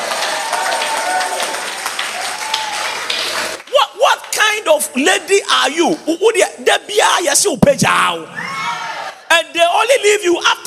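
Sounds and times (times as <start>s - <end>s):
audience clapping: 0.0s - 4.4s
speech: 4.7s - 8.5s, 9.4s - 10.6s.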